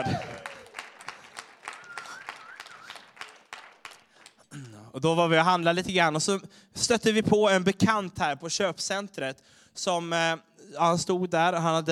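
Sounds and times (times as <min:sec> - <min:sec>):
speech: 0:00.0 - 0:00.3, 0:05.0 - 0:11.9
audience applause: 0:00.0 - 0:04.4.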